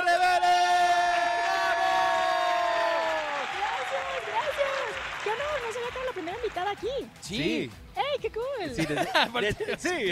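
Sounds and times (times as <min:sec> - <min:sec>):
crowd audience applause and cheering: 0:00.0 - 0:07.1
speech: 0:06.8 - 0:10.1
laughter: 0:08.7 - 0:10.1.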